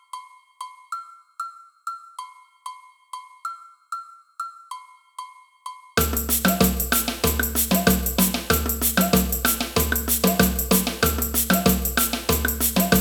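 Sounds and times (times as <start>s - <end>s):
agogo bells in a samba band: 6.0s - 12.9s.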